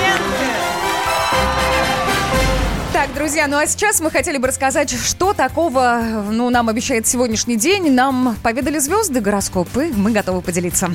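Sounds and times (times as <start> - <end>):
cheering: 0.0 - 2.8
crowd applauding: 0.0 - 3.2
speech: 3.0 - 10.9.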